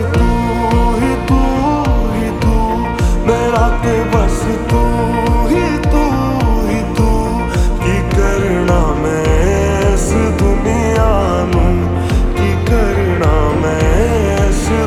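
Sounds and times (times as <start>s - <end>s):
slowed ringtone with reverb: 0.2s - 14.8s.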